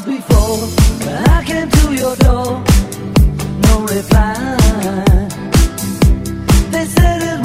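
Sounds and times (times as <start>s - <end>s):
rock music: 0.3s - 7.4s.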